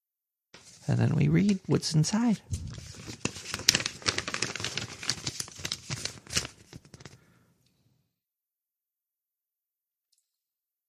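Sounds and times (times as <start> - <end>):
speech: 0.9 - 2.9
check paper torn open by hand: 2.5 - 7.2.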